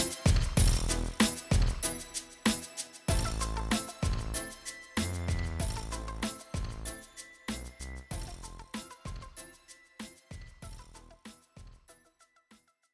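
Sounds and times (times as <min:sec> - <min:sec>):
G-funk music: 0:00.0 - 0:09.4.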